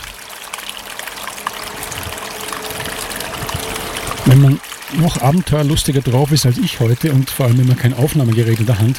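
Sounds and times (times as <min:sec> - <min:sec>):
waterfall in a gorge in Winterthur: 0:00.0 - 0:08.9
speech: 0:04.4 - 0:08.9.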